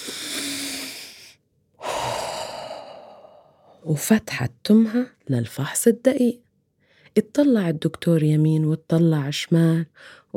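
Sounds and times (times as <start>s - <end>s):
sheep character taking a deep breath: 0.0s - 3.8s
speech: 3.8s - 6.4s, 7.2s - 10.3s.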